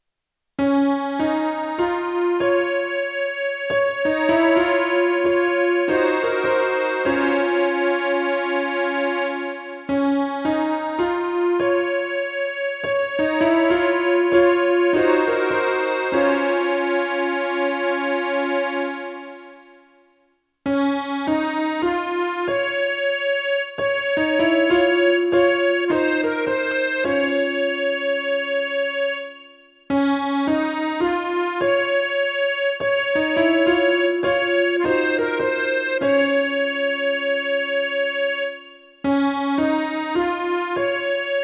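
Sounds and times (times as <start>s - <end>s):
monophonic melody: 0.6s - 41.4s.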